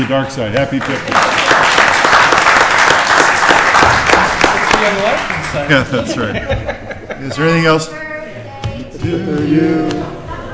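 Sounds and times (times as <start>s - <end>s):
speech: 0.0s - 1.6s, 4.8s - 8.0s, 9.0s - 10.5s
colleagues clapping at a department meeting for a coworker's birthday: 0.0s - 5.9s, 9.2s - 10.1s
laughter: 5.4s - 7.6s, 9.0s - 10.5s.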